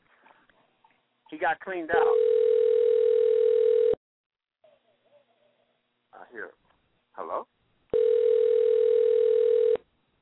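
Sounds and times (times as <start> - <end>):
speech: 1.3 - 2.4
telephone ringing: 2.0 - 4.0, 7.9 - 9.8.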